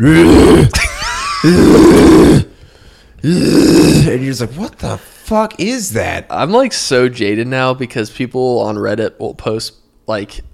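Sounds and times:
man imitating male koala mating bellow: 0.0s - 0.8s, 1.4s - 2.5s, 3.2s - 4.2s
speech: 0.0s - 0.8s, 1.4s - 2.4s, 3.2s - 10.5s.

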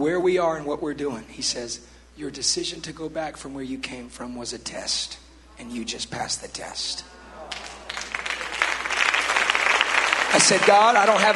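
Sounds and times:
speech: 0.0s - 7.2s, 10.4s - 11.3s
audience clapping: 7.4s - 11.3s.

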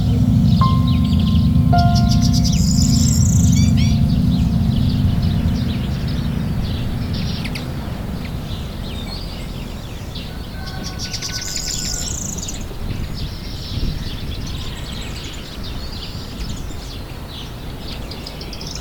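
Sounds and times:
faint held notes: 0.0s - 11.0s
steady low rumble: 0.0s - 11.3s
birds chirping and trilling: 0.0s - 12.6s.

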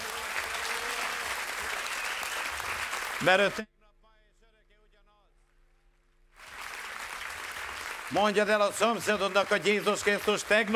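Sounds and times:
audience applause: 0.0s - 3.6s, 6.4s - 10.7s
speech: 3.2s - 3.7s, 8.1s - 10.7s.

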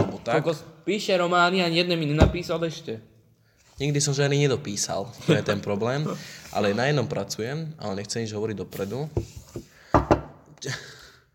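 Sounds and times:
speech: 0.2s - 3.1s, 3.8s - 9.7s, 10.6s - 11.0s
knocking on wood: 9.2s - 10.3s.

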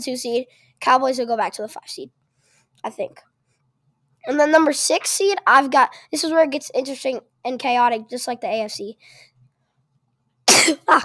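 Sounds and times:
speech: 0.0s - 2.2s, 2.8s - 3.3s, 4.2s - 9.3s, 10.6s - 11.0s
person sneezing: 10.5s - 11.0s.

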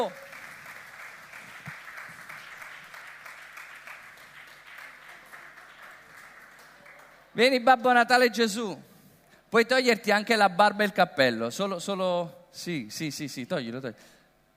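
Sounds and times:
speech: 0.0s - 0.2s, 7.4s - 8.9s, 9.5s - 14.2s
audience applause: 0.0s - 7.4s.

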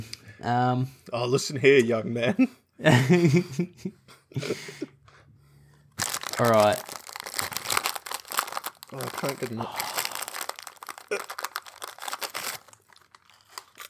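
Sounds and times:
speech: 0.0s - 4.9s, 6.4s - 7.0s, 8.9s - 9.9s
laughter: 2.8s - 5.0s
crinkling of a plastic snack packet: 6.0s - 13.8s.

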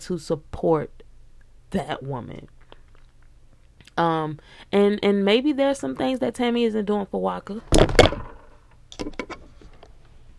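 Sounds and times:
speech: 0.0s - 1.0s, 1.7s - 2.6s, 4.0s - 8.0s
microphone knocked over: 7.7s - 8.6s.

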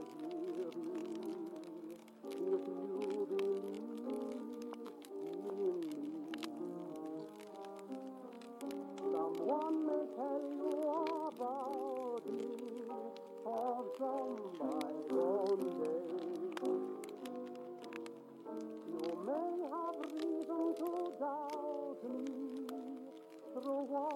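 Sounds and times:
crackling fireplace: 0.0s - 24.1s
oldies song from another room: 0.0s - 24.1s.

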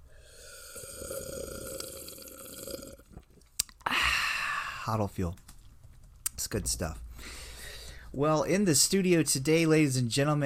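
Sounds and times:
slurping coffee: 0.2s - 3.3s
speech: 4.9s - 5.4s, 6.5s - 7.4s, 8.1s - 10.4s.

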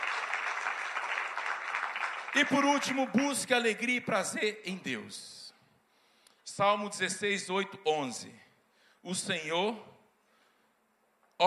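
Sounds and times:
church congregation applause during a worship service: 0.0s - 3.3s
speech: 2.3s - 5.4s, 6.6s - 8.4s, 9.0s - 10.0s.

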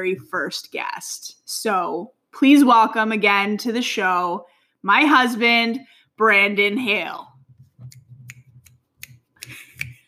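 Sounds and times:
speech: 0.0s - 7.3s
finger snapping: 9.0s - 10.0s.

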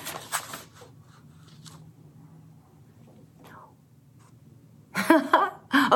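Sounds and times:
papery rustling and crinkling: 0.0s - 1.9s.

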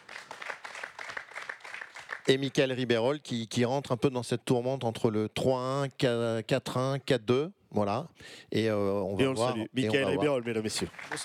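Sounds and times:
audience applause: 0.0s - 2.3s, 10.2s - 11.2s
speech: 2.3s - 11.2s.

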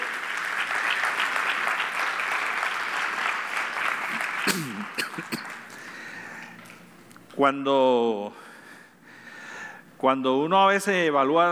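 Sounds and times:
audience applause: 0.0s - 6.8s
speech: 4.5s - 5.4s, 7.4s - 8.5s, 10.0s - 11.5s.

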